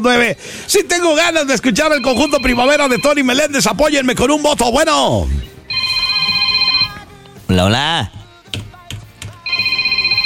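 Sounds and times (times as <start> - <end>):
speech: 0.0 - 5.5, 7.5 - 8.2
telephone ringing with electronic trill: 1.8 - 3.6, 5.7 - 7.1, 9.4 - 10.2.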